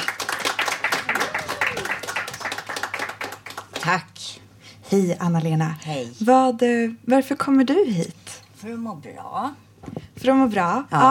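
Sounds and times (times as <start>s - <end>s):
audience applause: 0.0s - 3.9s
speech: 3.8s - 11.1s.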